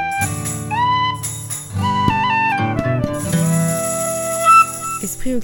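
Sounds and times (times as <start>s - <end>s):
jingle: 0.1s - 2.0s, 3.1s - 5.3s.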